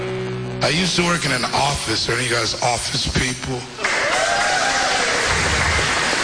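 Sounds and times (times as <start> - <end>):
speech: 0.6 - 4.0
crowd groaning: 3.8 - 6.2.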